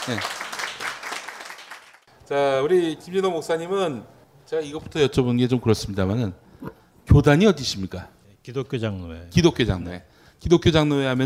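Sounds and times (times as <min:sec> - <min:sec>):
audience applause welcoming a speaker: 0:00.0 - 0:02.1
speech: 0:00.1 - 0:00.4, 0:02.3 - 0:11.2.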